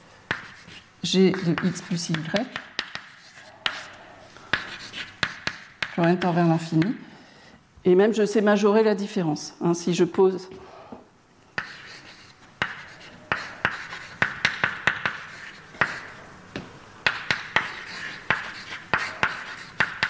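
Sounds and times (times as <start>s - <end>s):
writing taps and scratchy strokes on a board: 0.3s - 7.0s, 11.6s - 20.0s
speech: 1.1s - 2.7s, 6.0s - 7.1s, 7.8s - 10.7s.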